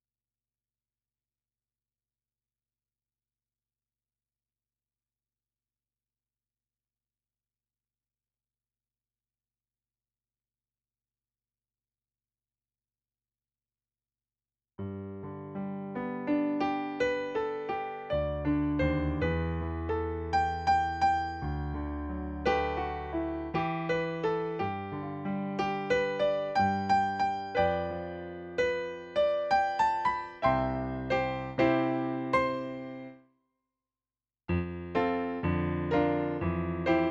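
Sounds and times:
piano: 14.8s - 33.2s, 34.5s - 37.0s.

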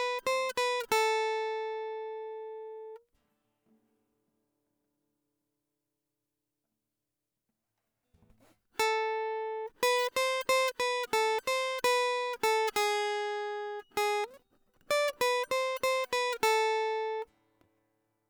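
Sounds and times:
guitar: 0.0s - 3.0s, 8.8s - 17.4s.

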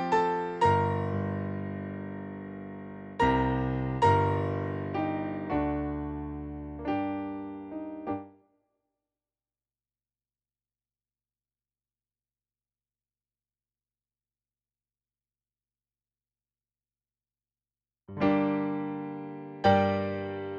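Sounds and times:
piano: 0.0s - 8.5s, 18.1s - 20.5s.

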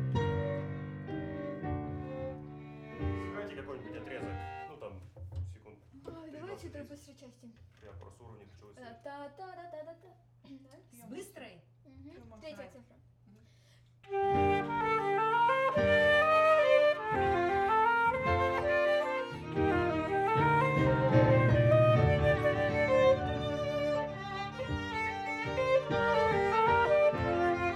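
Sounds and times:
flute: 0.2s - 2.4s, 14.0s - 24.4s, 25.6s - 27.7s.

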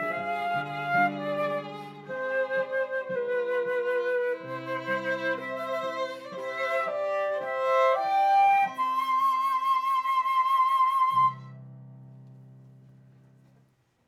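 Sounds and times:
viola playing in C minor: 0.0s - 11.6s.

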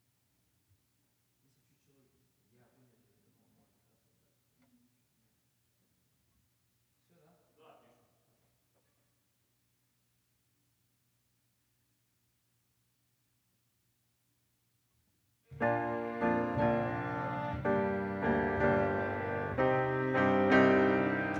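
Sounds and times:
piano: 15.5s - 21.3s.

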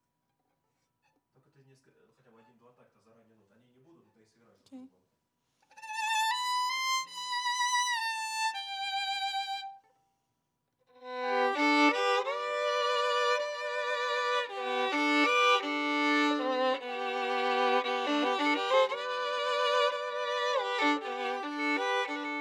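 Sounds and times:
viola: 5.7s - 9.8s, 11.0s - 22.3s.

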